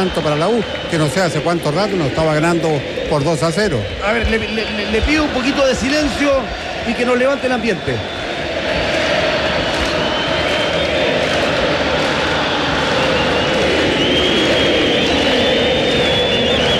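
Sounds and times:
speech: 0.0s - 8.2s
football fans chanting in the stands: 4.6s - 16.7s.

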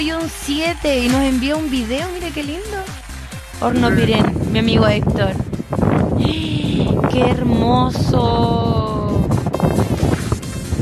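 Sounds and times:
speech: 0.0s - 3.0s, 3.6s - 9.0s
wind blowing: 0.0s - 10.7s.

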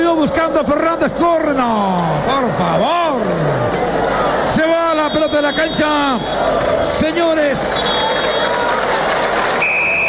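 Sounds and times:
lively commentary: 0.0s - 8.0s
constant crowd noise: 0.0s - 10.0s
speech: 0.6s - 3.8s, 4.7s - 8.8s
referee's whistle ending the first half of a football match at the Estadio Nacional: 4.9s - 6.4s, 7.7s - 8.5s, 9.6s - 10.0s.

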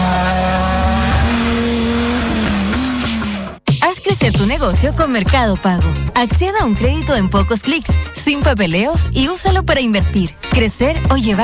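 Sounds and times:
rally car engine roaring: 0.0s - 3.6s
rally car tire squeal: 0.0s - 3.6s
speech: 4.2s - 11.4s.

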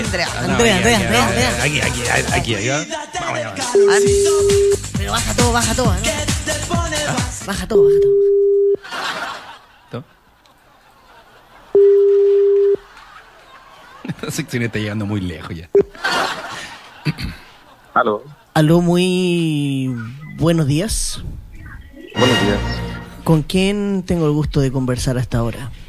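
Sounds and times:
laughter: 0.0s - 2.6s, 8.8s - 18.5s
speech: 0.1s - 8.5s, 9.9s - 10.1s, 14.2s - 17.4s, 18.0s - 21.4s, 22.2s - 25.8s
telephone ring tones: 7.8s - 8.8s, 11.8s - 12.8s.

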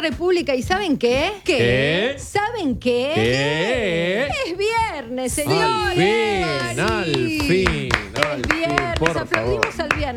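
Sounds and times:
speech: 0.0s - 10.1s
hands clapping: 5.5s - 10.1s.

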